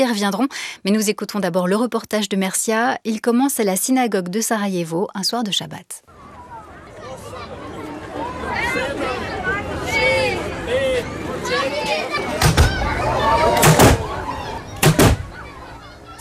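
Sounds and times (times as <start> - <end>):
speech: 0.0 - 6.1
murmuring crowd chattering: 6.1 - 16.2
cannon shot marking end of Ramadan fast: 13.6 - 14.1, 14.8 - 15.3.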